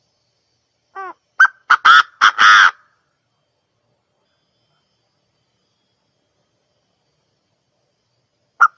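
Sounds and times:
partridge calling: 1.0s - 2.8s, 8.6s - 8.7s.

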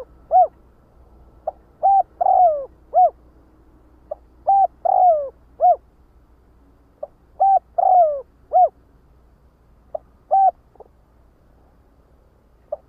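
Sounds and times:
spotted dove cooing: 0.0s - 0.6s, 1.4s - 3.2s, 4.1s - 5.9s, 7.0s - 8.8s, 9.9s - 10.9s, 12.7s - 12.8s
faint low hum: 0.0s - 12.8s.

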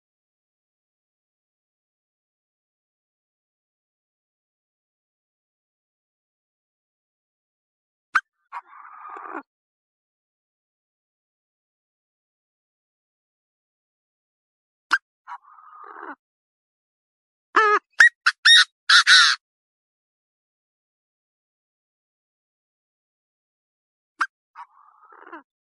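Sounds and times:
partridge calling: 17.6s - 19.4s.

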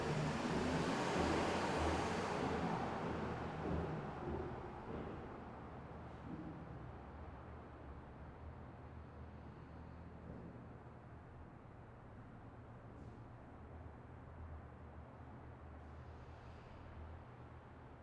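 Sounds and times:
high-heeled shoes walking down stairs: 0.0s - 5.4s.

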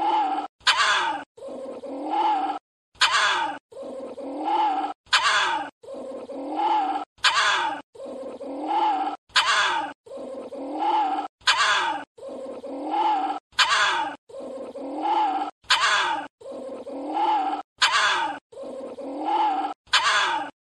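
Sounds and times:
small Indian civet moaning: 0.0s - 20.5s.

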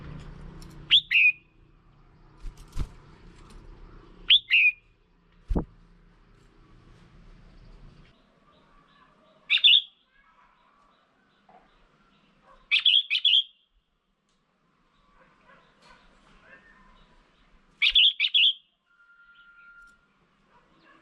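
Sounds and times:
red-whiskered bulbul whistled calls: 0.9s - 1.4s, 4.3s - 4.8s, 12.7s - 13.6s, 17.8s - 20.0s.

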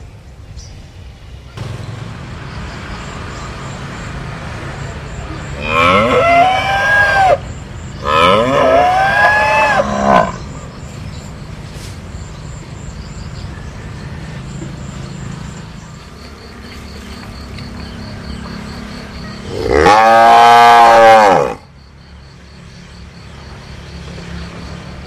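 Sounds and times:
cattle bellowing and mooing: 5.6s - 7.4s, 8.0s - 10.4s, 19.5s - 21.6s.

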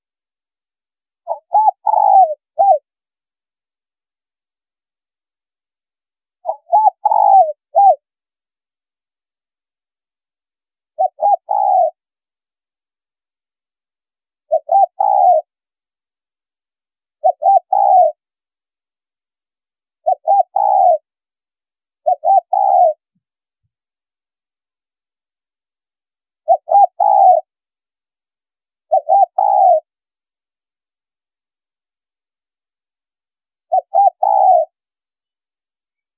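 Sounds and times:
spotted dove cooing: 1.2s - 2.9s, 6.4s - 8.0s, 11.0s - 12.0s, 14.5s - 15.5s, 17.2s - 18.2s, 20.0s - 21.1s, 22.0s - 23.1s, 26.4s - 27.5s, 28.9s - 29.9s, 33.7s - 34.8s.

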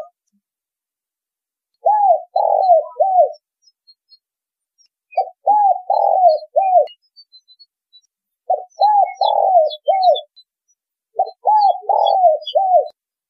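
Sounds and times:
spotted dove cooing: 1.8s - 3.4s, 5.1s - 7.0s, 8.5s - 10.3s, 11.2s - 13.0s.

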